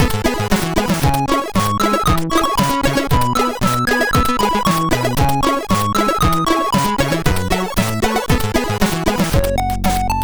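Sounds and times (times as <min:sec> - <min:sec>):
chiptune music on a SID chip: 0:00.0 - 0:10.2.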